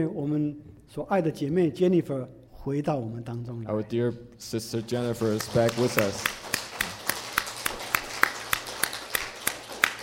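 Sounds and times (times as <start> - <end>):
speech: 0.0 - 6.5
audience applause: 4.8 - 10.0.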